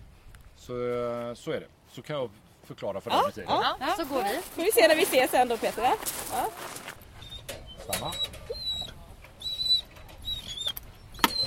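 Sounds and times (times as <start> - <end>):
speech: 0.7 - 6.8, 7.9 - 8.4
dog whimpering eagerly: 7.2 - 11.4.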